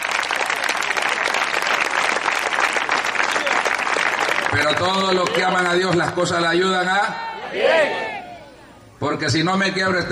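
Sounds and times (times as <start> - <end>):
audience applause: 0.0 - 6.2
speech: 4.6 - 8.2, 9.0 - 10.0.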